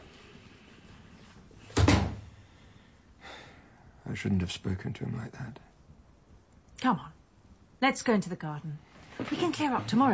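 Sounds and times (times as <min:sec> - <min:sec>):
door opening and closing: 0:01.7 - 0:02.3
speech: 0:04.1 - 0:05.7, 0:06.8 - 0:07.2, 0:07.8 - 0:10.1.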